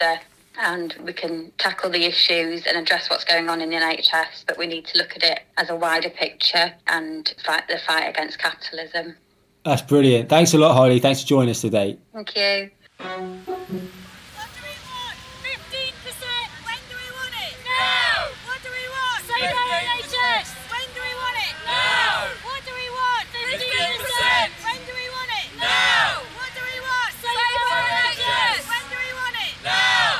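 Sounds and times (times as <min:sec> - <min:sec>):
speech: 0:00.0 - 0:14.0
protest crowd of NHS workers outside Parliament: 0:13.2 - 0:30.1
raised shouts: 0:14.8 - 0:30.1.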